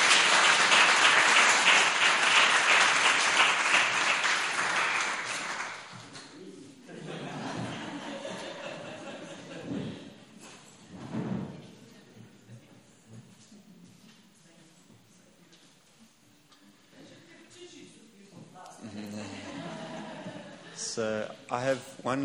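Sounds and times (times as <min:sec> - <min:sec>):
audience round of applause: 0:00.0 - 0:06.2
laughter: 0:06.4 - 0:10.3, 0:18.7 - 0:21.1.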